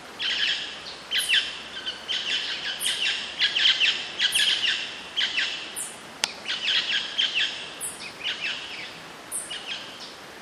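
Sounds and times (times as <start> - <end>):
background hiss: 0.0 - 10.3
birds chirping: 0.2 - 10.2.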